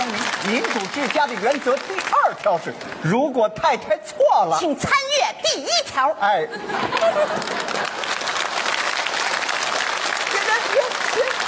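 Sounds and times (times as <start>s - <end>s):
audience applause during a comedic stage routine: 0.0s - 3.0s, 6.9s - 11.4s
speech: 0.4s - 8.1s
laughter: 6.4s - 8.5s.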